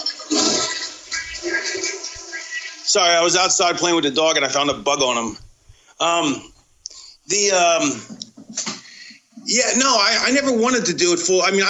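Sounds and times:
toilet flushing: 0:00.0 - 0:04.9
speech: 0:02.9 - 0:05.4, 0:06.0 - 0:06.5, 0:07.3 - 0:08.2, 0:09.5 - 0:11.6.

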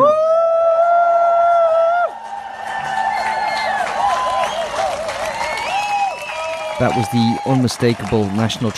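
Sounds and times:
large crowd applauding and cheering: 0:00.1 - 0:08.7
shrill whistles: 0:04.3 - 0:06.8
speech: 0:06.8 - 0:08.7.

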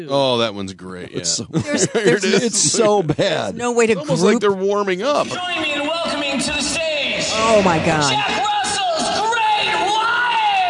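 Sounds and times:
speech: 0:00.0 - 0:08.5
laughter: 0:00.9 - 0:04.4, 0:05.0 - 0:05.9
concert crowd cheering: 0:05.6 - 0:10.6.

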